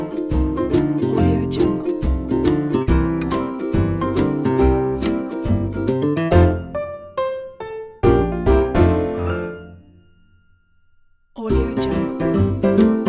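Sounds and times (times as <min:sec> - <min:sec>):
comedy jazz music: 0:00.0 - 0:06.8, 0:08.0 - 0:09.6, 0:11.5 - 0:13.0.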